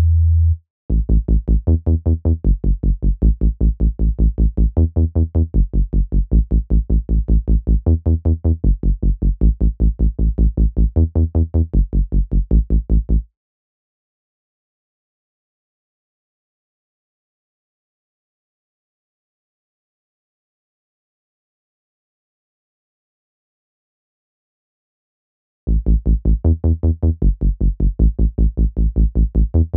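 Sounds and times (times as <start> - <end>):
synth bass: 0.0 - 13.2, 25.7 - 29.7.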